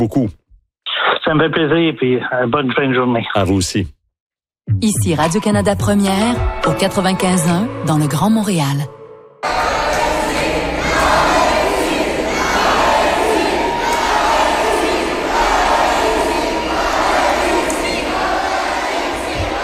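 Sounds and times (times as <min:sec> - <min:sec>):
speech: 0:00.0 - 0:00.4, 0:01.3 - 0:04.0, 0:04.7 - 0:09.6
crowd at Montreal City Hall cheering and chanting for Alexis Sanchez: 0:09.4 - 0:19.6.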